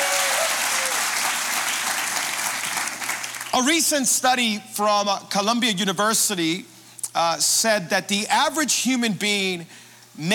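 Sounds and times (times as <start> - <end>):
Calvary Church congregation applauding: 0.0 - 3.8
speech: 3.6 - 10.3.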